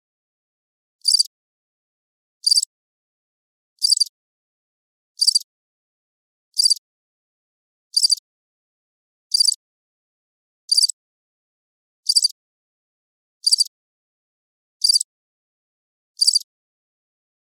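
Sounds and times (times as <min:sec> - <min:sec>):
cricket chirping: 0:01.1 - 0:01.3, 0:03.8 - 0:04.1, 0:05.2 - 0:05.4, 0:08.0 - 0:08.2, 0:09.3 - 0:09.6, 0:10.7 - 0:10.9, 0:12.1 - 0:12.3, 0:13.5 - 0:13.7, 0:14.8 - 0:15.0, 0:16.2 - 0:16.4.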